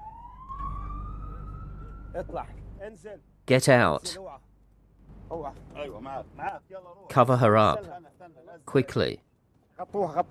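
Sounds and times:
ambulance siren as the ambulance races through the streets: 0:00.0 - 0:02.8
speech: 0:02.2 - 0:04.5, 0:05.3 - 0:10.3.

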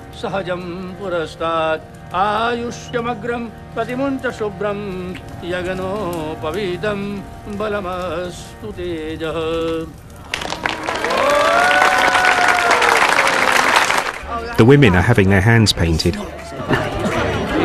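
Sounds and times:
music: 0:00.0 - 0:17.6
speech: 0:00.2 - 0:10.0, 0:14.6 - 0:16.9
guests clapping after a wedding ceremony: 0:10.2 - 0:14.4
laughter: 0:16.2 - 0:17.6.

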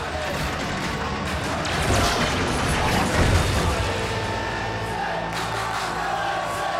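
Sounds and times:
heavier rumbling crash of the Loopy Loop amusement park ride destroyed: 0:00.0 - 0:04.8
jubilant crowd cheering and shouting as an amusement park ride is destroyed: 0:00.0 - 0:06.7.

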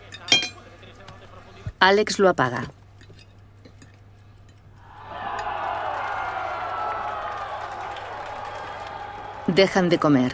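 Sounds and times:
speech: 0:01.8 - 0:02.8, 0:09.6 - 0:10.3
crowd shouting in victory after a goal: 0:04.8 - 0:10.3.

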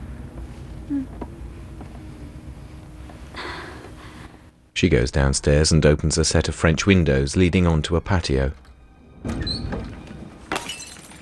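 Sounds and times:
speech: 0:00.9 - 0:01.3, 0:04.8 - 0:08.6
vase falling off a table and smashing: 0:08.6 - 0:11.2.

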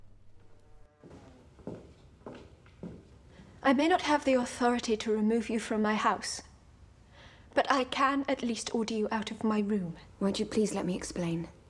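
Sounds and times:
soft footsteps crossing a bedroom: 0:00.0 - 0:03.6
speech: 0:03.6 - 0:06.5, 0:07.6 - 0:11.6.

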